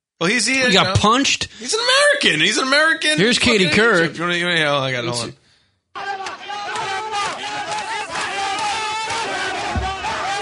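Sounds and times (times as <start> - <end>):
speech: 0.2 - 5.4
rioting street crowd: 6.0 - 10.4.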